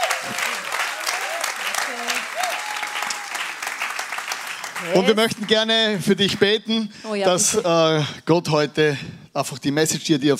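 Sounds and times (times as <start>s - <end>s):
faint cheers: 0.0s - 3.6s
audience applause: 0.0s - 6.6s
speech: 4.8s - 10.3s.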